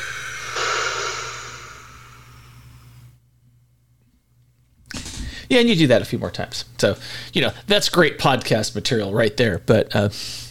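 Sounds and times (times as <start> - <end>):
breathy rush of air in a breathing exercise: 0.0 - 3.1
speech: 5.5 - 10.4.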